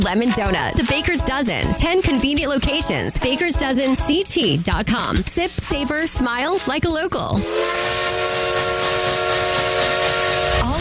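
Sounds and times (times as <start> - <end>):
speech: 0.0 - 8.3
steam train whistle: 7.4 - 10.7.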